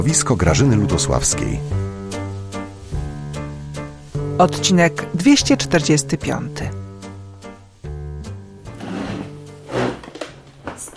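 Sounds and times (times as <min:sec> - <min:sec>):
speech: 0:00.0 - 0:01.9, 0:04.4 - 0:06.8
wooden table being pushed across the floor: 0:08.6 - 0:10.8.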